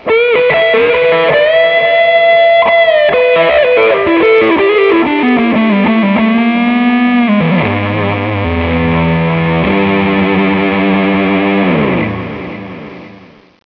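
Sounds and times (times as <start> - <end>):
guitar: 0.0 - 13.6.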